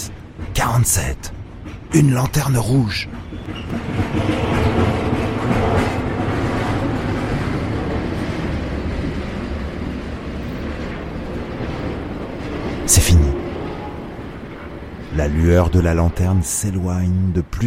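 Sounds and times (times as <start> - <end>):
long freight train rolling along the rails: 0.0 - 17.6
speech: 0.5 - 4.4, 15.2 - 17.6
wheels clattering over rail joints: 2.6 - 16.2.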